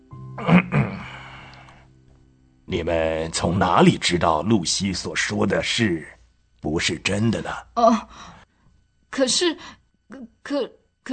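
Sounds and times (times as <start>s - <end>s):
old professor clearing his throat: 0.4s - 1.1s
speech: 2.7s - 8.4s, 9.1s - 11.1s.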